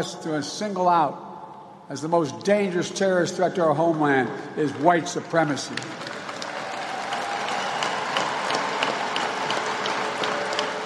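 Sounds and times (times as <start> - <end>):
speech: 0.0 - 1.3, 1.9 - 6.2
crowd applauding: 5.7 - 10.8.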